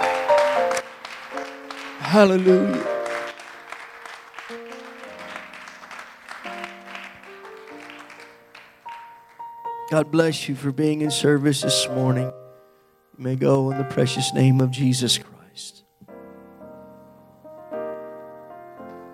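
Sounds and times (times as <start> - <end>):
audience applause: 0.0 - 9.6
speech: 2.1 - 2.9, 9.9 - 12.4, 13.2 - 15.8.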